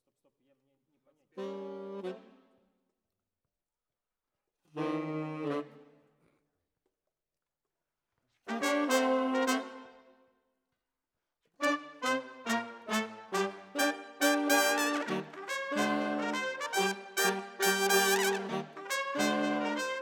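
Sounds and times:
saxophone: 1.4s - 2.4s, 4.8s - 6.0s, 8.5s - 10.1s, 11.6s - 20.0s.

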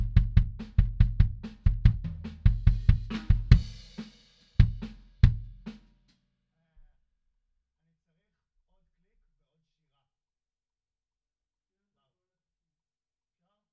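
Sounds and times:
bass drum: 0.0s - 5.8s.

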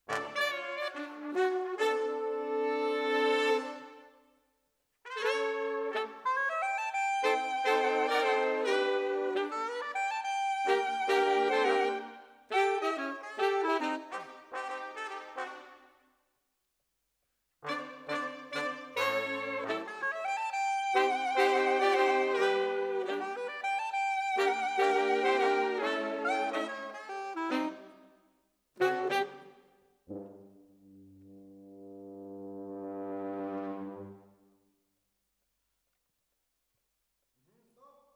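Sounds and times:
saxophone: 0.0s - 4.2s, 5.1s - 15.8s, 17.6s - 28.2s, 28.8s - 30.5s.

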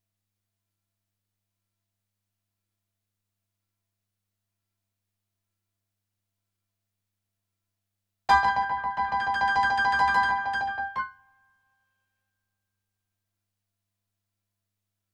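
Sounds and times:
rock and roll piano: 8.3s - 11.0s.

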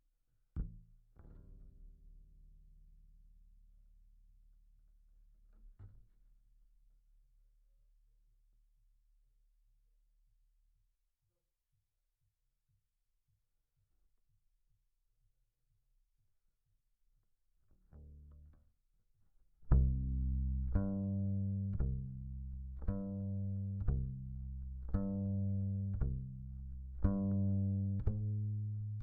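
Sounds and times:
bass guitar recorded by direct input: 0.6s - 3.4s, 17.8s - 18.6s, 19.7s - 29.0s.

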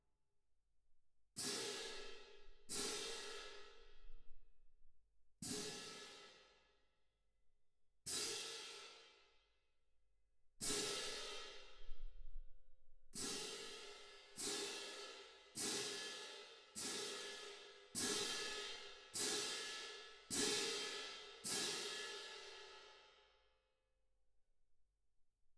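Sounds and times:
percussion: 1.4s - 4.2s, 5.4s - 6.6s, 8.1s - 9.3s, 10.6s - 12.5s, 13.1s - 23.1s.

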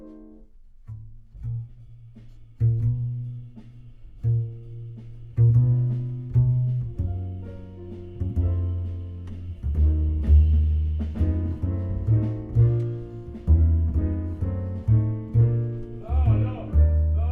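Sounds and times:
synth bass: 4.4s - 17.2s.

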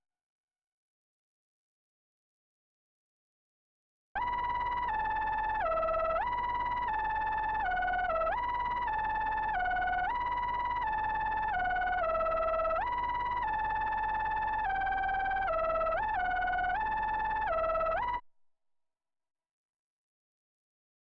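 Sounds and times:
Moog synthesizer: 4.2s - 18.2s.

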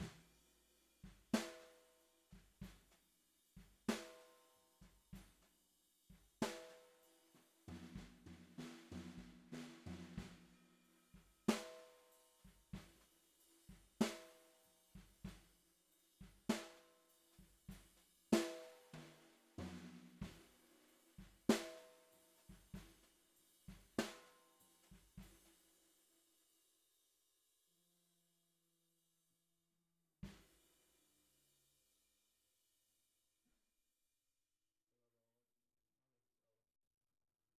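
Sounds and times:
bottom snare drum: 0.0s - 0.4s, 1.0s - 3.0s, 3.6s - 5.5s, 6.1s - 13.1s, 13.7s - 15.5s, 16.2s - 25.6s.

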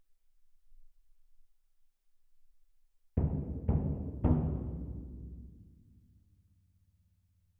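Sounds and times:
percussion: 3.2s - 6.3s.

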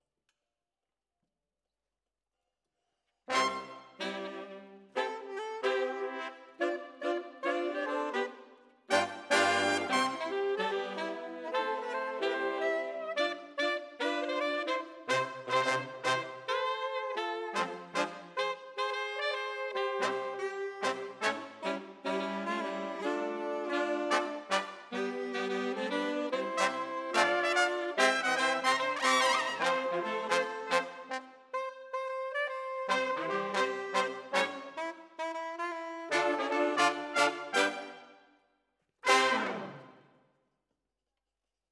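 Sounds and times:
brass instruments: 3.3s - 38.2s, 39.0s - 40.1s.

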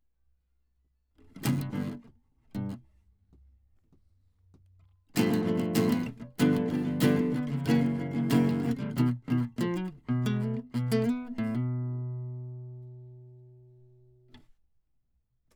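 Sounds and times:
classical guitar: 1.2s - 2.8s, 5.2s - 14.4s.

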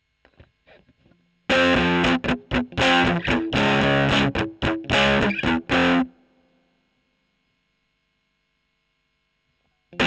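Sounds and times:
electric guitar recorded with a Gefell microphone: 0.3s - 6.2s.

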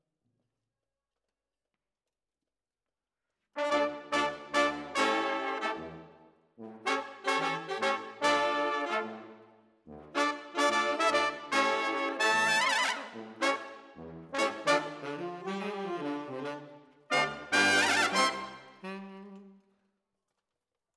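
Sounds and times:
brass instruments: 3.6s - 19.6s.

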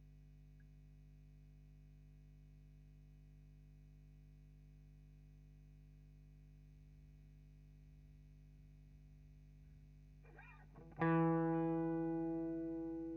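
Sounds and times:
guitar recorded with Royer microphone: 10.3s - 13.1s.

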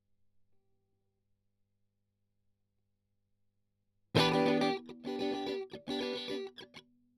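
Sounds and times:
strings strummed: 4.2s - 6.7s.

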